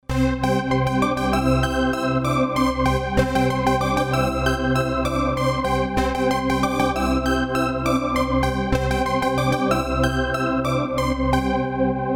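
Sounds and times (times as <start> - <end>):
synth: 0.1 - 12.0.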